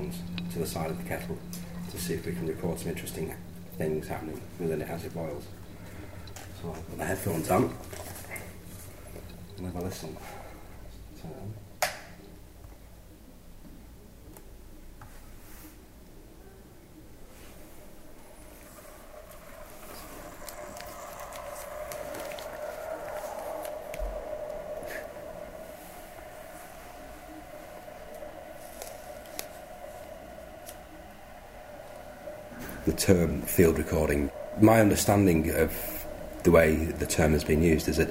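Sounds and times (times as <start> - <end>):
field background radiation noise: 0.0 - 38.0.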